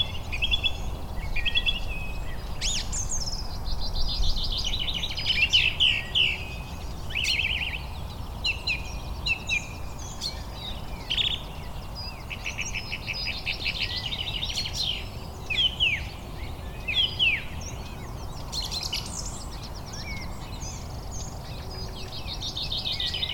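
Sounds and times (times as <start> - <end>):
Turdus philomelos song thrush singing: 0.0 - 23.3.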